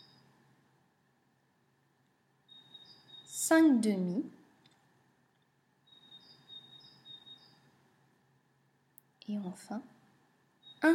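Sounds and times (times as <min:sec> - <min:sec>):
small bird chirping: 0:00.0 - 0:00.4, 0:02.4 - 0:03.6, 0:05.4 - 0:07.8, 0:10.6 - 0:10.9
speech: 0:03.5 - 0:04.4, 0:09.5 - 0:10.0.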